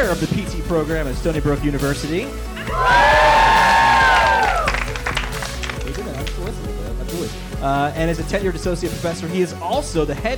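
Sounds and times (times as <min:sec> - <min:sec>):
speech: 0:00.1 - 0:03.1, 0:07.6 - 0:10.3
audience cheering and whooping: 0:02.6 - 0:05.2
scattered audience clapping: 0:03.5 - 0:06.7.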